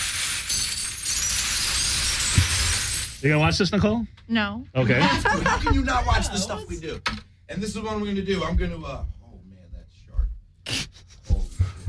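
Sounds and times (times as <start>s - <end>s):
broken glass bottles poured from a bucket onto the ground: 0.0s - 3.4s
speech: 3.2s - 9.2s
laughter: 4.8s - 6.8s.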